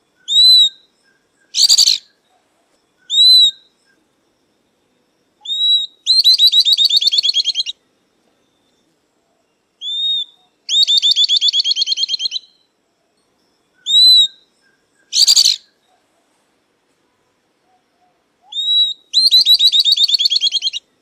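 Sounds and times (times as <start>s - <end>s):
southern beardless-tyrannulet song: 0.2s - 2.4s, 3.0s - 4.0s, 5.4s - 7.8s, 9.8s - 12.7s, 13.8s - 16.0s, 18.4s - 20.9s.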